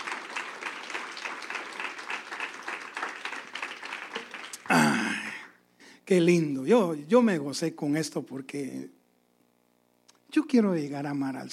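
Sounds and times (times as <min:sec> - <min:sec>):
audience applause: 0:00.0 - 0:05.4
speech: 0:06.1 - 0:09.0, 0:10.3 - 0:11.5.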